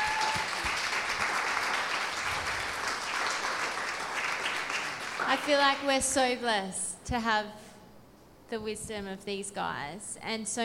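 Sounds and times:
audience applause: 0.0 - 5.5
speech: 5.3 - 7.6, 8.5 - 10.6.

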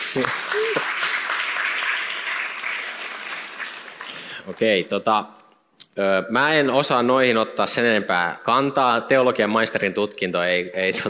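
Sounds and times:
audience applause: 0.0 - 4.8
speech: 0.1 - 0.9, 4.5 - 5.4, 6.0 - 11.0
person whooping: 0.2 - 0.9.

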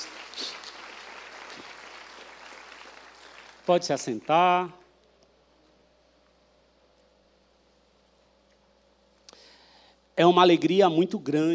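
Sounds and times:
audience applauding: 0.0 - 4.4
speech: 3.7 - 4.8, 10.2 - 11.5.

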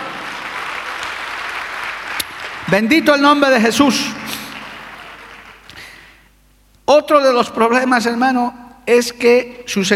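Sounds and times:
audience applause: 0.0 - 3.0, 4.3 - 6.0
speech: 2.7 - 4.2, 6.9 - 9.9.

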